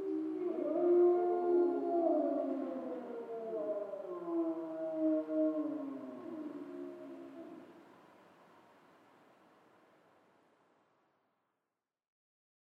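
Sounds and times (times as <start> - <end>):
grey wolves howling in chorus in Schorfheide: 0.0 - 7.8.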